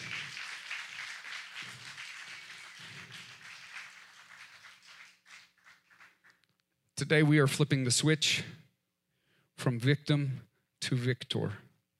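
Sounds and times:
audience clapping hands: 0:00.0 - 0:06.5
speech: 0:07.0 - 0:08.6, 0:09.6 - 0:11.6.

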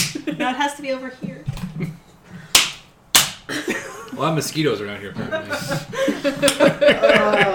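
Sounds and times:
hand clap: 0:00.0 - 0:00.2, 0:02.5 - 0:03.5, 0:06.4 - 0:06.7
speech: 0:00.4 - 0:02.0, 0:04.2 - 0:07.5
laughter: 0:05.1 - 0:07.5.

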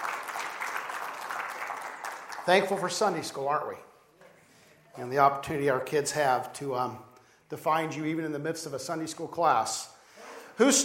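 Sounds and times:
audience applause: 0:00.0 - 0:03.2
speech: 0:02.4 - 0:03.9, 0:05.0 - 0:10.0, 0:10.6 - 0:10.8.

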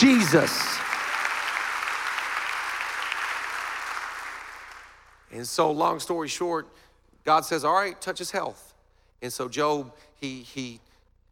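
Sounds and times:
speech: 0:00.0 - 0:00.9, 0:05.3 - 0:10.9
audience clapping: 0:00.0 - 0:05.2.

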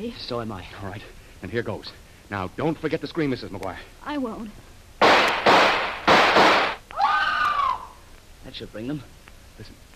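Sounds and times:
speech: 0:00.0 - 0:04.6, 0:08.4 - 0:09.9
revolver fired: 0:05.0 - 0:06.8.

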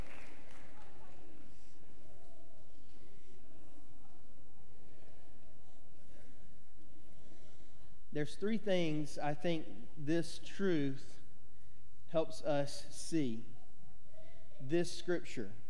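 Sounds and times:
crowd applauding: 0:00.0 - 0:01.3
speech: 0:08.2 - 0:11.2, 0:12.1 - 0:13.5, 0:14.6 - 0:15.6.

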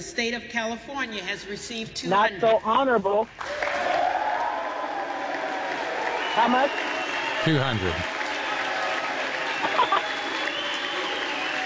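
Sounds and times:
speech: 0:00.0 - 0:04.0, 0:06.4 - 0:08.1
crowd cheering and applauding in the House chamber during a vote for Speaker: 0:03.4 - 0:11.6
murmur of voices: 0:07.5 - 0:08.1.

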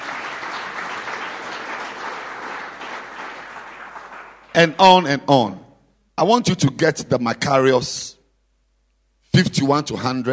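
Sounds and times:
audience clapping for a book at a religious teaching session: 0:00.0 - 0:05.1
speech: 0:04.6 - 0:05.6, 0:06.2 - 0:08.2, 0:09.3 - 0:10.3.

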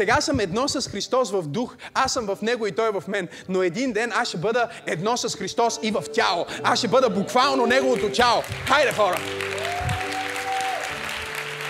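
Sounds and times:
speech: 0:00.0 - 0:09.9
applause: 0:07.7 - 0:11.6.

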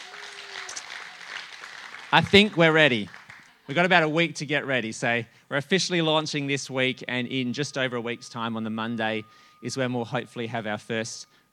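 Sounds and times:
group clapping: 0:00.0 - 0:04.0
speech: 0:02.1 - 0:11.5
faint sustained tone: 0:05.8 - 0:11.5.

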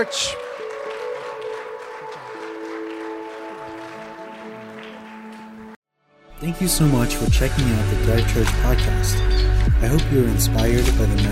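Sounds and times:
speech: 0:00.0 - 0:00.5, 0:06.4 - 0:11.2
church audience applause: 0:00.0 - 0:05.8
sustained musical tones: 0:00.0 - 0:11.2.

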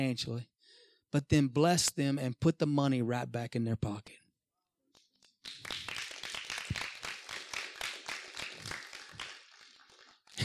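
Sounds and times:
speech: 0:00.0 - 0:00.5, 0:01.1 - 0:04.2
scattered clapping from a group: 0:05.0 - 0:10.4.

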